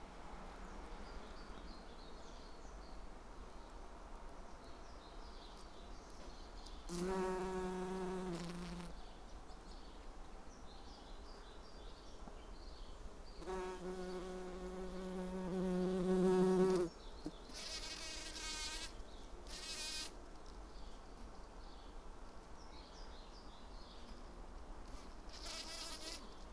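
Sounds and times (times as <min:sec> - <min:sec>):
bumblebee wing buzz: 0:06.9 - 0:08.9, 0:13.4 - 0:20.2, 0:24.9 - 0:26.3.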